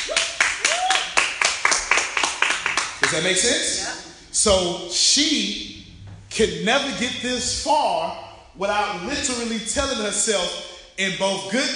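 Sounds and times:
person whooping: 0.0 - 1.2
audience clapping: 0.0 - 3.8
speech: 3.1 - 11.7.

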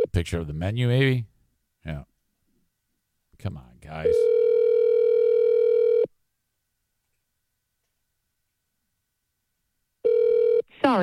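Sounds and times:
speech: 0.2 - 2.1, 3.4 - 4.4, 10.9 - 11.0
telephone tone during a phone call: 4.0 - 6.1, 10.0 - 10.7.

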